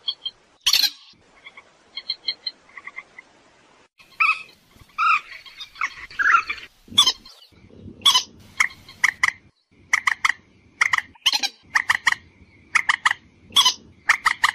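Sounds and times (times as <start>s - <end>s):
purple swamphen screeching and clucking: 4.0s - 14.5s.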